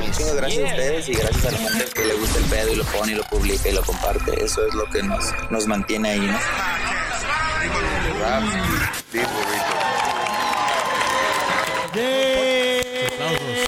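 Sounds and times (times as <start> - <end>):
speech: 0.1 - 7.0, 7.7 - 9.3, 11.9 - 12.6
applause: 9.1 - 13.6.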